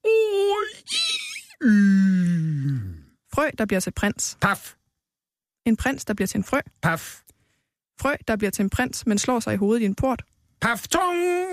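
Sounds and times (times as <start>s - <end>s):
voice acting out Santa Claus yawning with an exaggerated theatrical yawn: 0.6s - 3.1s
speech: 3.4s - 4.8s, 5.6s - 7.3s, 8.0s - 11.5s.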